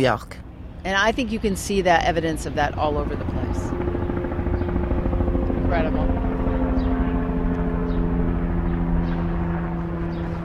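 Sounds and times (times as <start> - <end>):
speech: 0.0 - 3.9, 5.7 - 6.2
helicopters flying overhead: 0.0 - 10.4.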